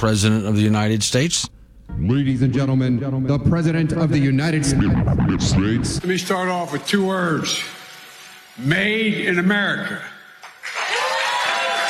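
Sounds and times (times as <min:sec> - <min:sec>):
speech: 0:00.0 - 0:07.8, 0:08.6 - 0:10.1
audience applauding: 0:10.4 - 0:11.8.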